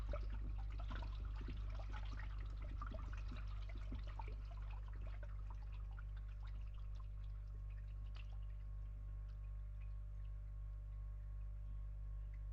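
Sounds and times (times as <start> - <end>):
pump running: 0.0 - 8.5
water draining in a pipe: 0.0 - 11.6.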